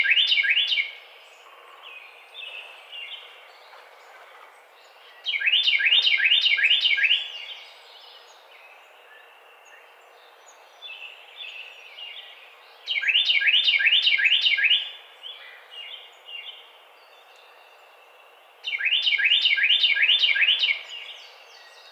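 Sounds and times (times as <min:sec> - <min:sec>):
Carolina wren song: 0:00.0 - 0:21.9.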